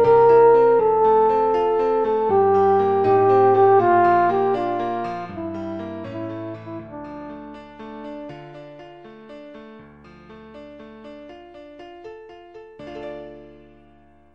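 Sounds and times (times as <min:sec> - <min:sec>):
french horn: 0:00.0 - 0:08.5.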